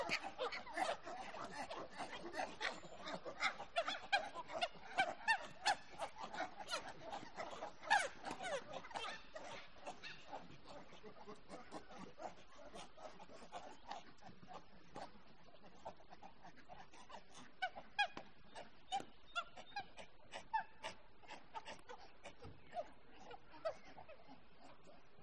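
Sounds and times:
monkeys calling with shrill squeals and honking cries: 0:00.0 - 0:25.2.

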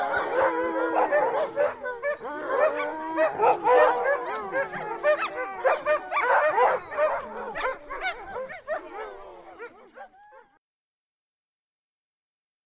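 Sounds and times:
dogs barking, yipping and whining: 0:00.0 - 0:10.6.

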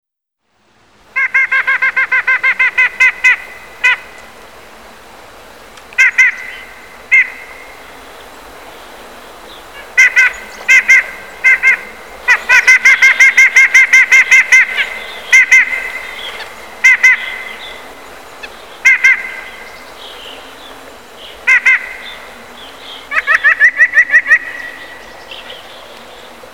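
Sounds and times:
Eurasian jay nasal calls: 0:01.1 - 0:04.4, 0:05.9 - 0:08.0, 0:09.5 - 0:20.6, 0:21.2 - 0:25.7.

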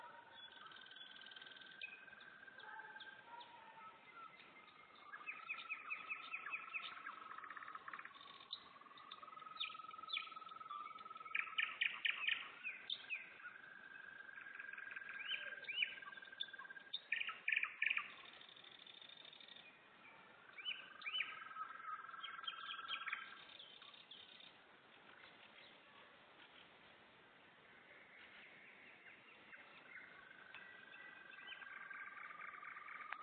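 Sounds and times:
nightingale singing: 0:00.0 - 0:26.0, 0:27.7 - 0:33.2.

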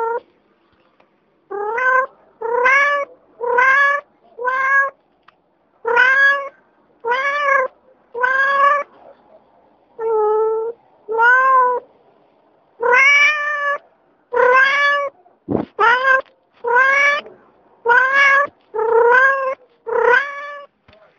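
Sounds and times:
cat meowing: 0:00.0 - 0:00.2, 0:01.5 - 0:05.0, 0:05.8 - 0:08.9, 0:10.0 - 0:11.8, 0:12.8 - 0:20.7.

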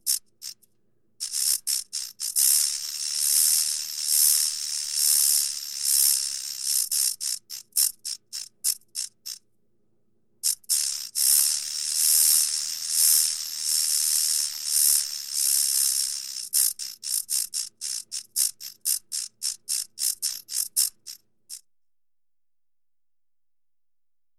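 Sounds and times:
snake hissing: 0:01.2 - 0:08.4, 0:10.4 - 0:20.9.

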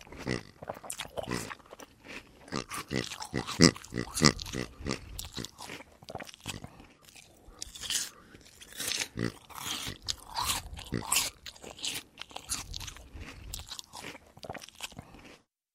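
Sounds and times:
pig eating with wet crunching and chewing: 0:00.0 - 0:15.5
pig low grunting: 0:00.2 - 0:01.6, 0:02.5 - 0:05.6, 0:09.0 - 0:11.3.

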